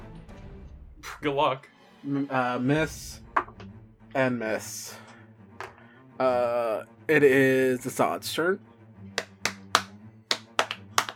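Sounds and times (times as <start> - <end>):
speech: 1.0 - 3.2, 4.1 - 5.0, 6.2 - 8.7
hand clapping: 9.1 - 11.1.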